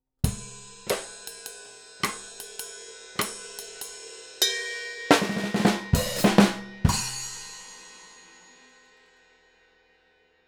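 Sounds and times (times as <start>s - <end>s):
drums: 0.2s - 8.6s.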